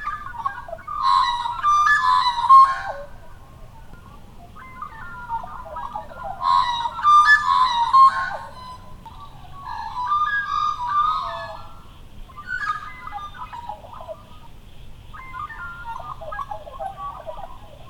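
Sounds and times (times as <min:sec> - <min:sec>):
magpie warbling calls: 0:00.0 - 0:17.8.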